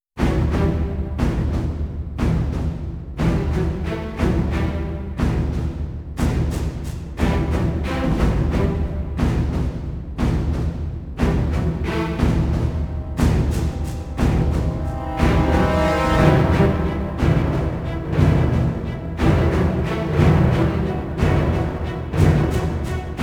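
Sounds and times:
music without choir: 0:00.2 - 0:23.2.

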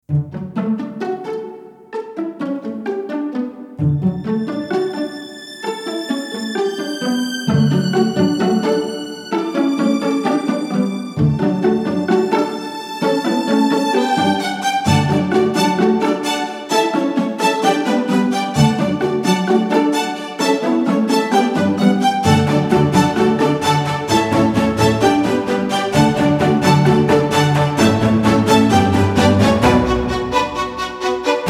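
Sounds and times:
strings: 0:00.1 - 0:31.4.

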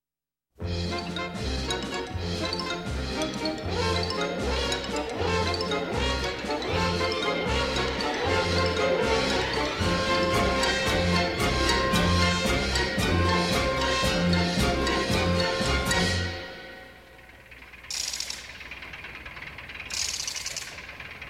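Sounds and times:
string orchestra: 0:00.7 - 0:16.8.

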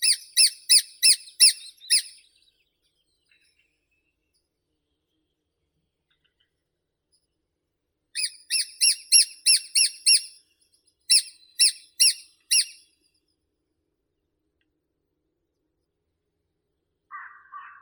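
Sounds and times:
lesser spotted woodpecker Dendrocopos minor: 0:00.0 - 0:02.2, 0:08.2 - 0:10.4, 0:11.1 - 0:12.8.

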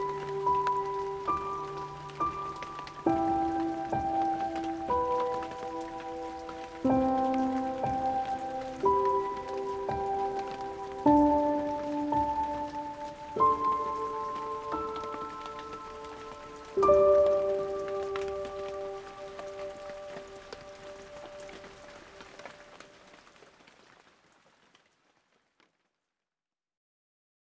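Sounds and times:
peaceful piano: 0:00.0 - 0:23.2
rain: 0:00.0 - 0:25.8.

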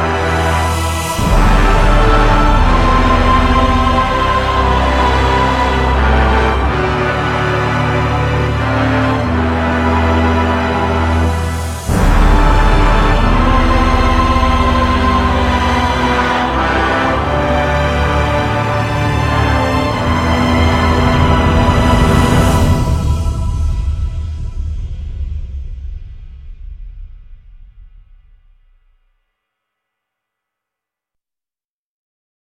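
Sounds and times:
choir singing: 0:00.0 - 0:24.7.

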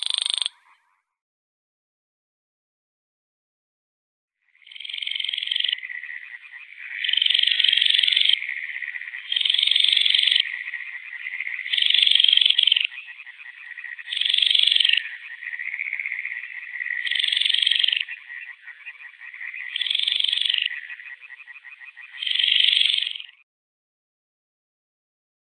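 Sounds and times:
Baillon's crake Porzana pusilla calling: 0:00.0 - 0:00.9, 0:05.1 - 0:23.4.

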